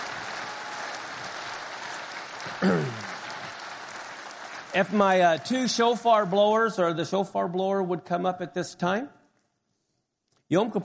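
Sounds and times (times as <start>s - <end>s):
audience clapping: 0.0s - 7.1s
speech: 2.5s - 3.1s, 4.7s - 9.2s, 10.5s - 10.8s.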